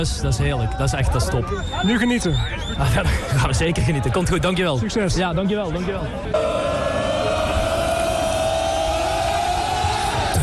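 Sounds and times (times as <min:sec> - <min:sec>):
speech: 0:00.0 - 0:06.7
crowd roaring and cheering at a football match: 0:06.3 - 0:10.4
horn-like drone: 0:06.4 - 0:09.3.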